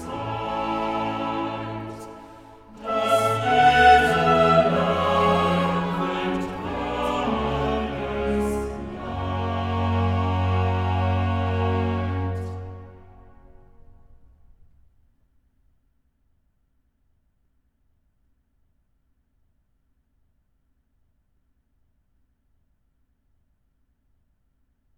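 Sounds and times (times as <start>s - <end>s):
chorale: 0.0s - 14.2s.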